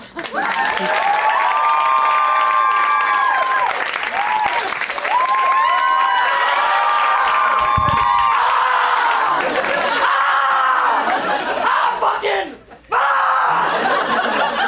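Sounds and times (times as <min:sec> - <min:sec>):
audience round of applause: 0:00.0 - 0:11.6
laughter: 0:08.7 - 0:14.6.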